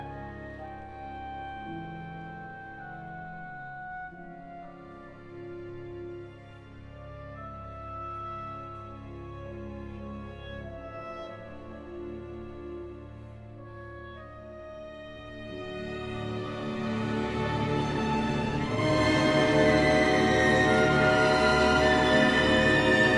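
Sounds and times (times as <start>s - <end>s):
symphony orchestra playing: 0.0s - 23.1s.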